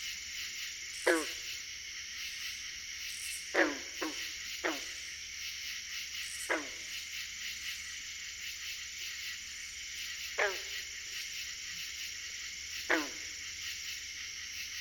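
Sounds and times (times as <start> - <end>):
insect chorus: 0.0 - 14.7
green frogs calling: 0.9 - 5.6, 6.2 - 7.1, 10.2 - 14.7.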